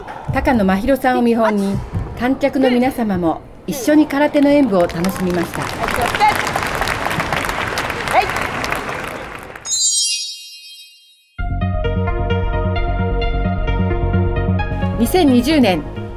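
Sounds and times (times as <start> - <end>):
speech: 0.3 - 6.3, 15.1 - 16.0
audience applause and cheers at a karate demonstration: 4.8 - 9.7
music: 11.4 - 16.1.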